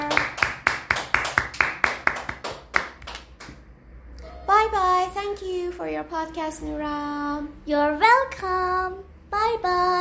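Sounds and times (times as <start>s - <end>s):
people clapping: 0.0s - 3.6s
speech: 4.7s - 9.9s.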